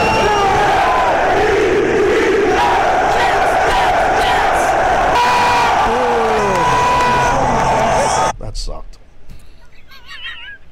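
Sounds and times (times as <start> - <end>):
football chant mashup: 0.0 - 8.3.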